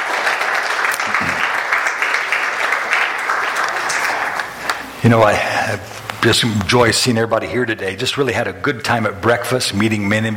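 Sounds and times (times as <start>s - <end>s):
audience applause: 0.0s - 5.5s
speech: 5.0s - 10.3s.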